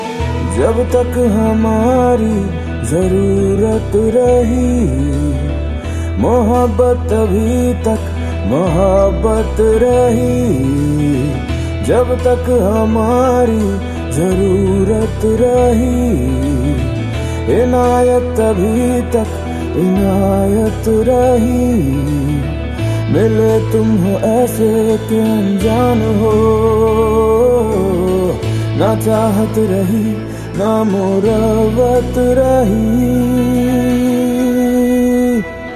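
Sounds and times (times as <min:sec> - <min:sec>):
Bollywood sad ringtone: 0:00.0 - 0:35.7.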